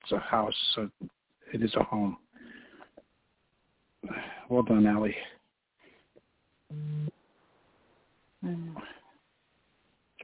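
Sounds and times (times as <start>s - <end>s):
speech: 0.1s - 2.2s, 4.0s - 5.3s, 6.7s - 7.2s, 8.4s - 9.0s
phone notification buzzing: 6.7s - 7.1s.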